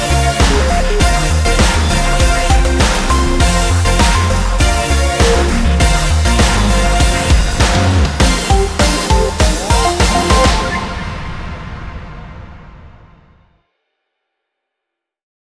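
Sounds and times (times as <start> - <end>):
beats: 0.0 - 11.5.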